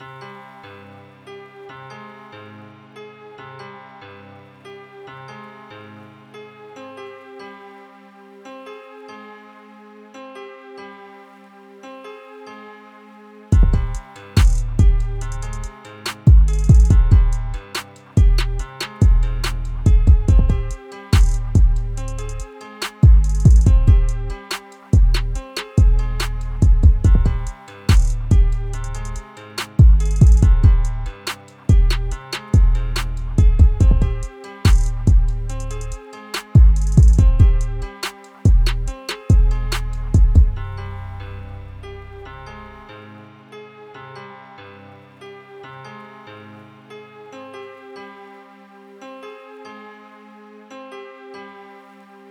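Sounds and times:
bass boosted beats: 13.5 - 24.4, 25.0 - 29.2, 29.8 - 36.0, 36.6 - 37.9, 38.5 - 40.7.

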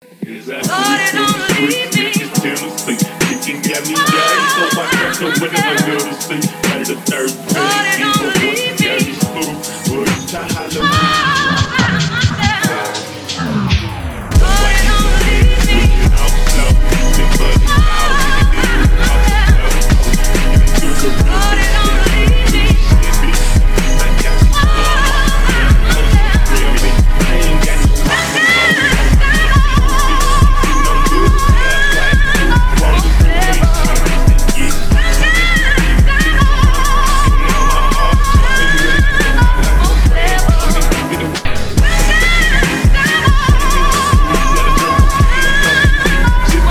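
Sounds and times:
phonk music: 0.0 - 46.6.

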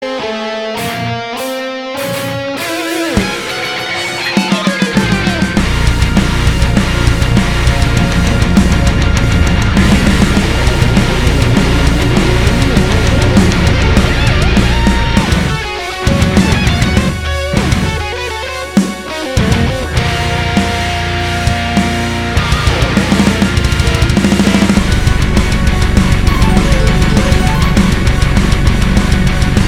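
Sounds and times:
metal cover song: 0.0 - 29.6.

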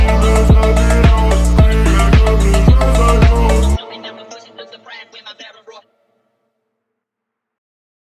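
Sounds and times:
phonk music: 0.0 - 6.0.

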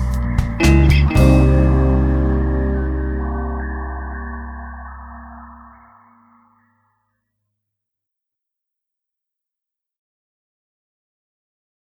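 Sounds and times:
flute in rock music: 0.0 - 6.3.

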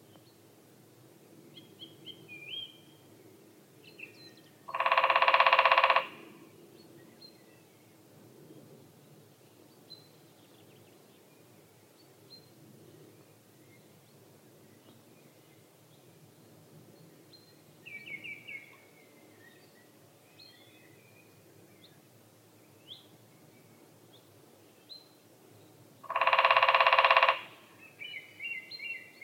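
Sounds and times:
lesser spotted woodpecker Dendrocopos minor calling: 4.7 - 6.3, 26.0 - 29.2.

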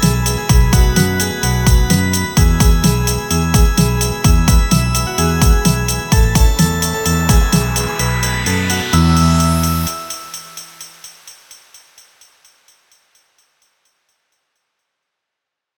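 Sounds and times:
song remix: 0.0 - 11.1.

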